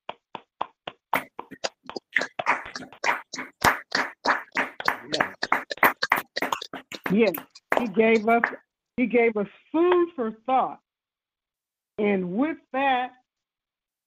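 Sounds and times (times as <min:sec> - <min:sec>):
audience applause: 0:02.3 - 0:07.1
speech: 0:02.8 - 0:03.1, 0:07.1 - 0:10.8, 0:12.0 - 0:13.2.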